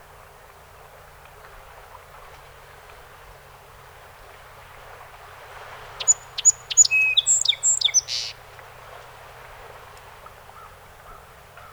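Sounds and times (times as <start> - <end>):
song sparrow song: 5.9 - 8.4.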